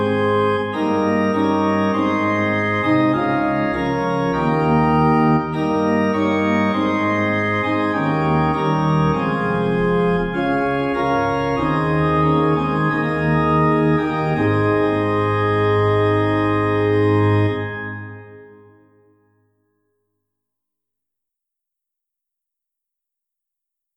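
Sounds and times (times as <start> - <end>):
organ: 0.0 - 19.1.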